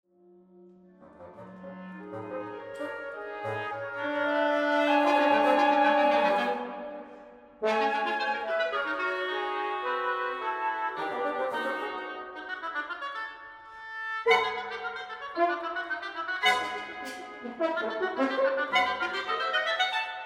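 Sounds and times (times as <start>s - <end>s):
wind quintet: 0.7s - 20.2s.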